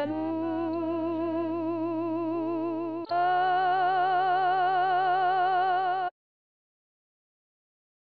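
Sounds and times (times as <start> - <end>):
sopranos singing a sacred piece: 0.0 - 6.1.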